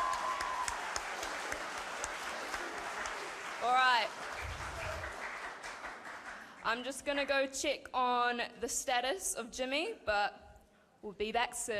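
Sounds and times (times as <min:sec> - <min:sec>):
round of applause: 0:00.0 - 0:06.6
speech: 0:06.7 - 0:10.4, 0:11.0 - 0:11.7.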